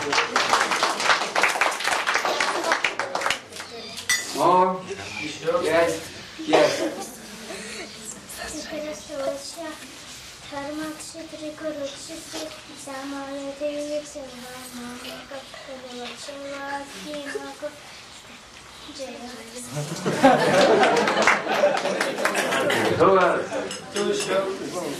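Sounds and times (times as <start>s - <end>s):
children clapping hands: 0.0s - 3.7s, 20.6s - 22.6s
children chattering: 2.2s - 20.0s
laughter: 6.4s - 8.2s, 19.7s - 23.7s.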